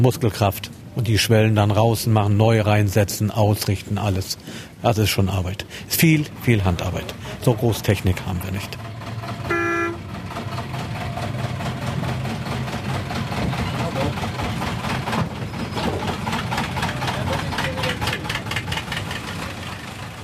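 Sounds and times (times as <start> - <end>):
speech: 0.0 - 8.9
diesel locomotive engine rumbling: 0.0 - 20.2
locomotive horn toot: 9.5 - 10.1.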